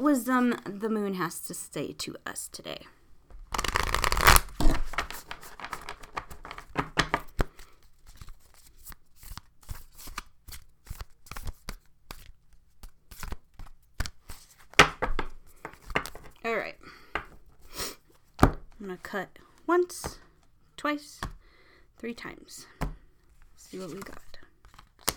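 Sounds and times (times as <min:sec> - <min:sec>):
speech: 0:00.0 - 0:03.6, 0:18.9 - 0:20.2, 0:20.8 - 0:21.3, 0:22.0 - 0:22.8, 0:23.7 - 0:24.3
Moonology Oracle card deck being shuffled: 0:03.5 - 0:16.4, 0:23.3 - 0:25.1.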